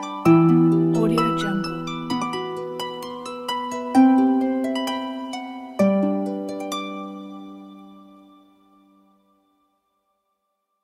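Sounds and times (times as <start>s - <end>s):
magic forest ambience: 0.4s - 5.6s.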